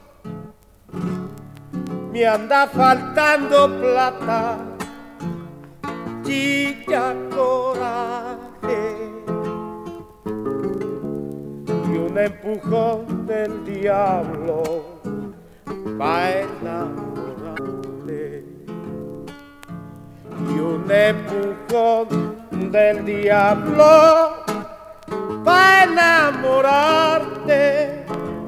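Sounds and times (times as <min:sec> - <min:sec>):
guitar playing zamba: 0:00.0 - 0:28.4
person singing zamba: 0:02.1 - 0:04.8, 0:06.2 - 0:09.4, 0:11.8 - 0:18.5, 0:20.4 - 0:28.4.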